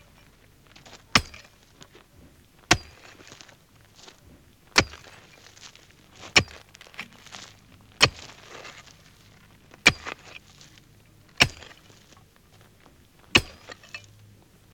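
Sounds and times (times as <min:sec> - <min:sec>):
hammering rocks: 0:01.1 - 0:01.6, 0:02.6 - 0:03.2, 0:04.8 - 0:05.3, 0:06.3 - 0:06.7, 0:08.0 - 0:08.4, 0:09.8 - 0:10.2, 0:11.4 - 0:11.9, 0:13.3 - 0:13.9.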